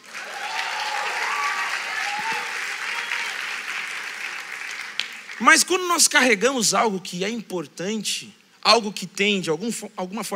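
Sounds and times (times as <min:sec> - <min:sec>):
audience applause: 0:00.0 - 0:05.6
speech: 0:05.4 - 0:10.3.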